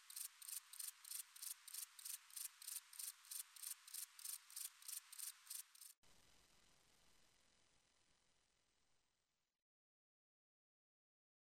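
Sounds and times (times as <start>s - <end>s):
heath grasshopper chirping: 0.0s - 6.0s.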